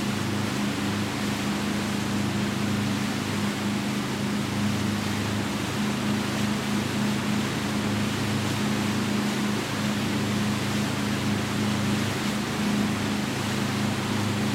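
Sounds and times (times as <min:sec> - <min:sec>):
yacht drive at the stern: 0:00.0 - 0:14.5.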